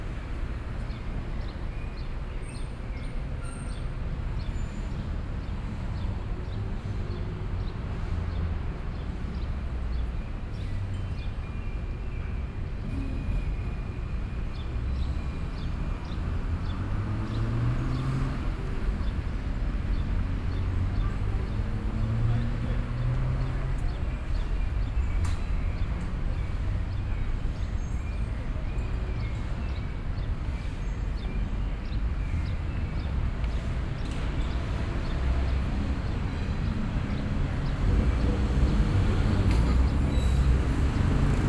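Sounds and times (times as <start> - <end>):
street ambience in Brazil: 0.0 - 41.4.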